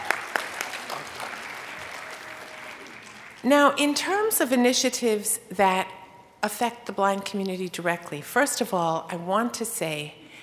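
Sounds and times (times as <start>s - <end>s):
audience cheering and applauding: 0.0s - 3.4s
speech: 3.4s - 10.2s.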